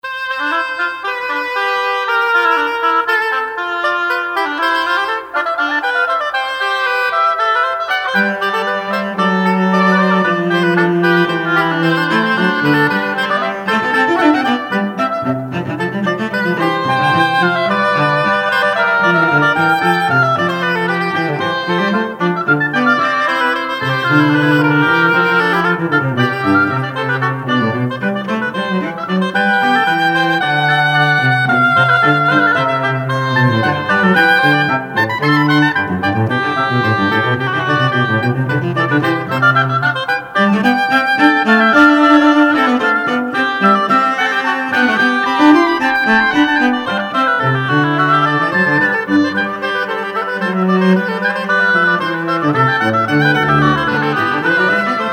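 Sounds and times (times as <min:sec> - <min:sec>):
trio sonata in C major alla breve fugue: 0:00.0 - 0:55.1.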